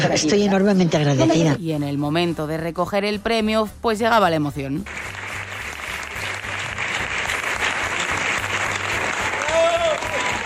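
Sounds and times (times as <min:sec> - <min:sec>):
speech: 0:00.0 - 0:05.2
audience ovation applause: 0:04.9 - 0:10.4.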